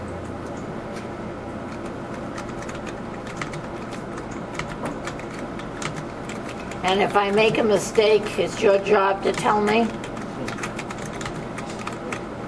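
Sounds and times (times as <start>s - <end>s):
typing on a computer keyboard: 1.7s - 8.3s, 9.1s - 12.4s
speech: 6.8s - 10.0s.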